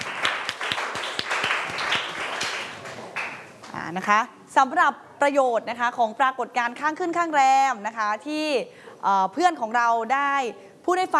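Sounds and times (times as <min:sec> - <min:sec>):
classroom applause for a student: 0:00.0 - 0:03.6
speech: 0:03.9 - 0:11.1.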